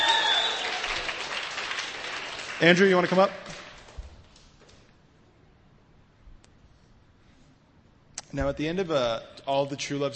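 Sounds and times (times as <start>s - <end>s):
audience applause: 0.0s - 4.0s
speech: 2.6s - 3.5s, 8.4s - 10.1s.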